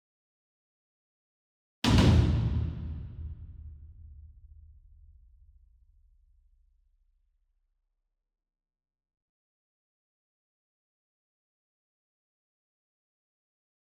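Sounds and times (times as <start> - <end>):
single 60 inch taiko drum hit with double hard beater: 1.9 - 5.4.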